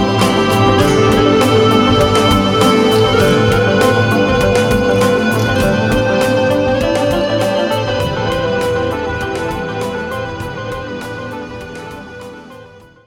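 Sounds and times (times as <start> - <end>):
erhu solo: 0.0 - 11.0.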